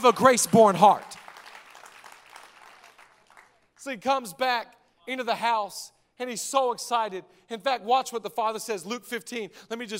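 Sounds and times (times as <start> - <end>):
speech: 0.0 - 1.2, 3.8 - 9.9
crowd clapping: 0.0 - 3.8.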